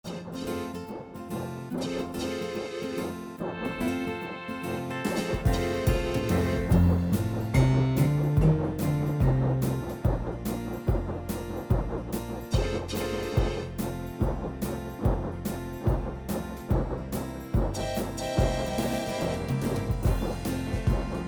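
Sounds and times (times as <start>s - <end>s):
boogie music: 0.1s - 21.2s.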